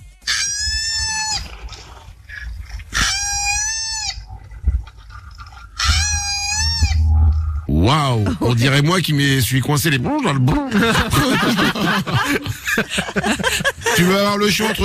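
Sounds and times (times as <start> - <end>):
male koala bellowing to attract females: 0.2 - 7.9
speech: 7.9 - 14.8
laughter: 10.4 - 14.8.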